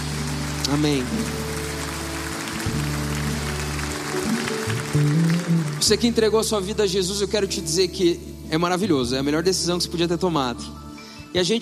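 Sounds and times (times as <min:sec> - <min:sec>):
audience applauding: 0:00.0 - 0:06.9
low sustained musical tones: 0:00.0 - 0:11.6
speech: 0:00.7 - 0:01.4, 0:05.8 - 0:11.6.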